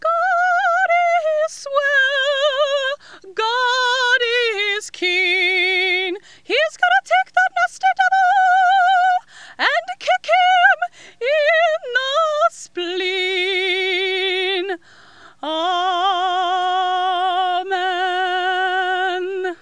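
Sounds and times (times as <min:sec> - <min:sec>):
soprano singing: 0:00.0 - 0:14.8, 0:15.4 - 0:19.6.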